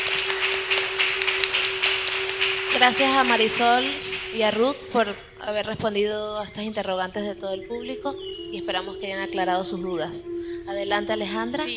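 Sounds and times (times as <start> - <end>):
audience applause at a public discussion on plurinationality in Bolivia: 0.0 - 5.1
low hum: 0.0 - 11.7
speech: 2.8 - 11.7.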